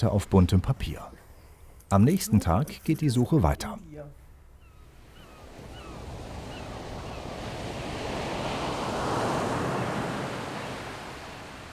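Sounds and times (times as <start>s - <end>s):
speech: 0.0s - 1.2s, 1.9s - 4.2s
steady wind-like hiss: 4.3s - 11.7s
ocean waves breaking on shore: 5.0s - 11.7s.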